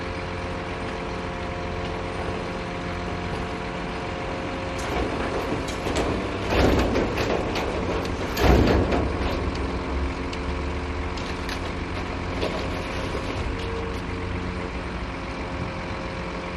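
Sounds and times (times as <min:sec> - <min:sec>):
residential garbage truck loading lots of garbage in winter in Moscow Russia: 0:00.1 - 0:16.5.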